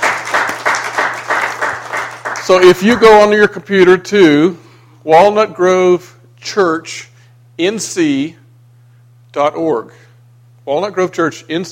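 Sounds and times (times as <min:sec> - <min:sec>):
audience applauding: 0:00.0 - 0:02.9
speech: 0:02.5 - 0:08.4, 0:09.3 - 0:10.0, 0:10.7 - 0:11.7.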